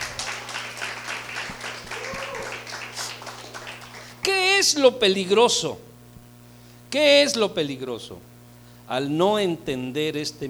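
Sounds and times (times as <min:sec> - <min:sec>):
audience applause: 0:00.0 - 0:04.2
low constant electrical hum: 0:00.0 - 0:10.4
speech: 0:04.6 - 0:05.9, 0:06.9 - 0:08.3, 0:08.9 - 0:10.4.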